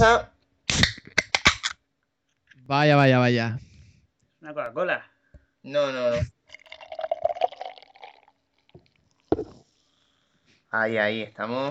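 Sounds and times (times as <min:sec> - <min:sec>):
speech: 0:00.0 - 0:00.3, 0:02.7 - 0:03.7, 0:04.4 - 0:06.4, 0:10.7 - 0:11.7
Estrella Galicia 1906 Reserva Especial beer pouring and fizzing: 0:06.4 - 0:09.5
faint knock: 0:09.3 - 0:09.6.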